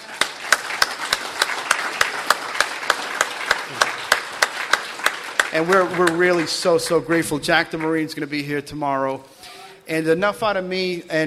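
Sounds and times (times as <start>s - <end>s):
sharp evenly spaced hand claps: 0.0s - 7.9s
crowd applauding: 0.0s - 8.3s
speech: 5.5s - 9.3s, 9.9s - 11.2s.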